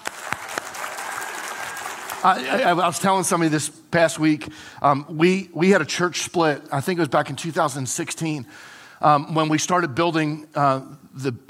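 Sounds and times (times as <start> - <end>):
audience applause: 0.0 - 3.0
speech: 2.2 - 11.4.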